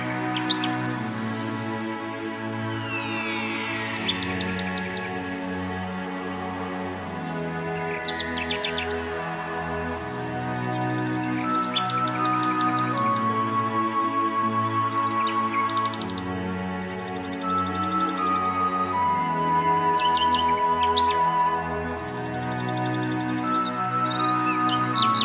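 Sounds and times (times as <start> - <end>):
birdsong: 0.0 - 25.2
cheerful positive music: 0.0 - 25.2.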